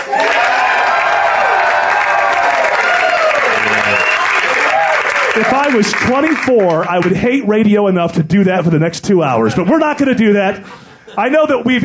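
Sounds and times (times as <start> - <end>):
whoops and cheers: 0.0 - 5.5
studio audience applause: 0.0 - 7.3
speech: 5.4 - 11.8.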